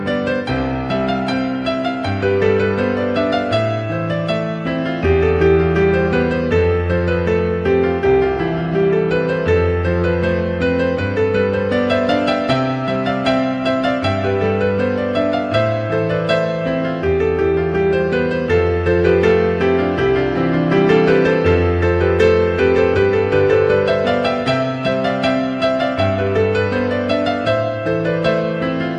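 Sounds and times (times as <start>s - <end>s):
piano piece: 0.0s - 28.9s.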